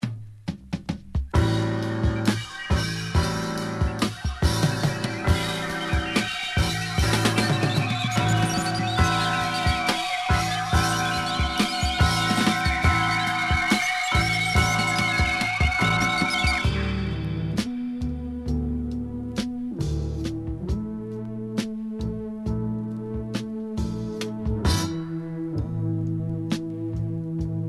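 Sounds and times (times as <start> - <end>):
jazz instrumental: 0.4 - 27.6.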